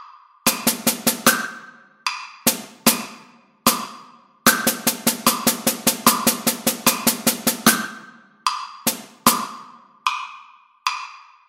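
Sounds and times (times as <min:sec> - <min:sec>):
drum set: 0:00.5 - 0:01.8, 0:02.4 - 0:08.2, 0:08.8 - 0:09.8.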